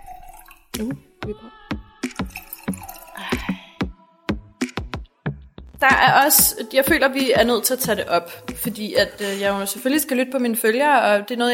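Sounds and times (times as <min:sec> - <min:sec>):
wine being poured into glasses: 0:00.0 - 0:00.8, 0:02.2 - 0:03.5
speech: 0:00.8 - 0:01.7, 0:05.8 - 0:11.5.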